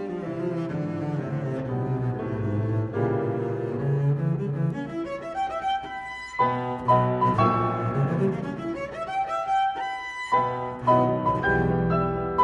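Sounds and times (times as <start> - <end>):
allegro concerto movement: 0.0 - 12.3.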